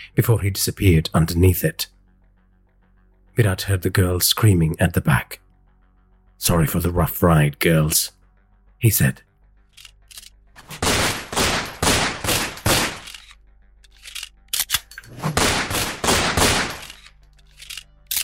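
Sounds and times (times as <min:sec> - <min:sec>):
speech: 0:00.2 - 0:02.0, 0:03.4 - 0:05.4, 0:06.4 - 0:08.2, 0:08.8 - 0:09.3
pistol gunfire: 0:10.6 - 0:13.2, 0:15.2 - 0:17.0.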